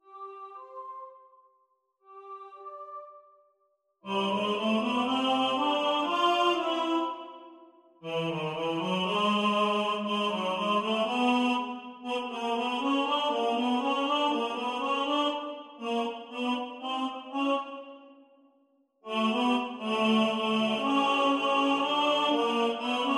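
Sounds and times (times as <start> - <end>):
tenor singing: 4.1 - 7.4, 8.0 - 18.0, 19.1 - 23.1.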